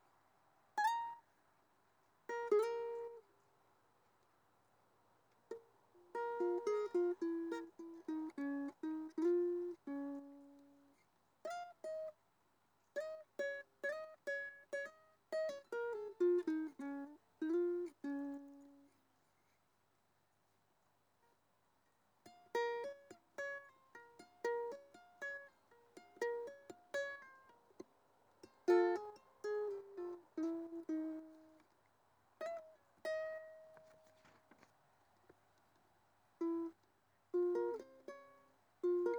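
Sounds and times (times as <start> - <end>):
ukulele solo: 0.8 - 1.3, 2.3 - 3.3, 5.5 - 12.2, 12.9 - 19.0, 22.2 - 31.7, 32.4 - 34.3, 36.4 - 39.1.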